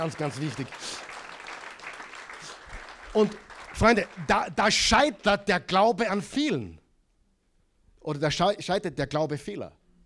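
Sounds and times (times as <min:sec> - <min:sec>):
speech: 0:00.0 - 0:01.2, 0:03.1 - 0:06.8, 0:08.0 - 0:09.8
audience applause: 0:00.0 - 0:05.1.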